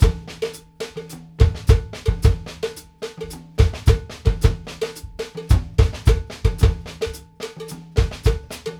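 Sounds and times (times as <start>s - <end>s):
kick drum: 0.0s - 0.4s, 1.4s - 2.7s, 3.6s - 7.2s, 8.0s - 8.6s
cowbell: 0.0s - 8.7s
tom drum: 0.0s - 8.7s.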